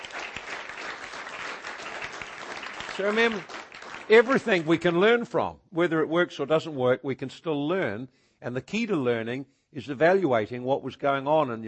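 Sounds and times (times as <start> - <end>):
audience applause: 0.0 - 5.1
speech: 3.0 - 11.6.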